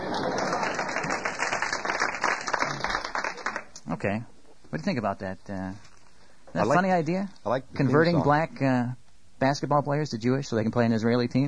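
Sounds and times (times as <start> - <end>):
audience applause: 0.0 - 3.7
speech: 4.0 - 5.9, 6.5 - 11.4.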